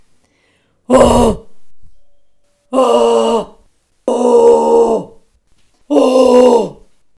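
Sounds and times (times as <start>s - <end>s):
grunt: 0.9s - 1.5s, 2.8s - 5.2s, 5.9s - 6.8s.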